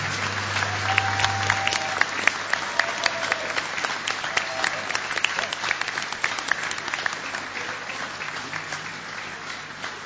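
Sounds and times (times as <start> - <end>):
low hum: 0.0 - 2.2
audience applause for a military orchestra: 0.0 - 10.0.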